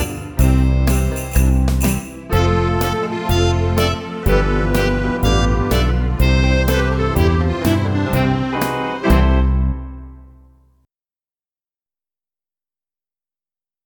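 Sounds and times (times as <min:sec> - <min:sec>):
slow Christmas song: 0:00.0 - 0:10.7.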